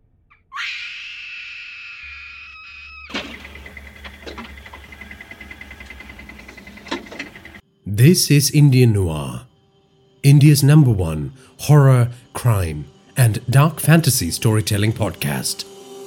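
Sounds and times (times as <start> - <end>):
woman screaming in terror in cave: 0.5 - 3.1
speech: 8.0 - 9.5, 10.2 - 15.8.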